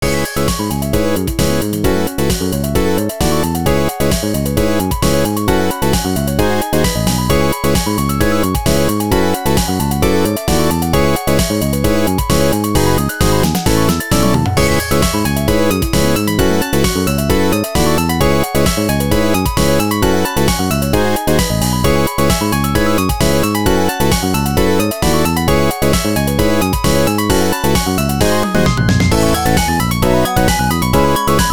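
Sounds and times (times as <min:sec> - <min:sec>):
funk music: 0:00.0 - 0:31.5.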